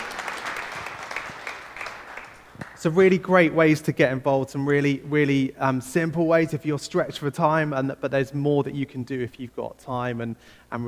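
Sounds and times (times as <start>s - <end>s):
audience round of applause: 0.0s - 2.8s
speech: 2.8s - 10.8s.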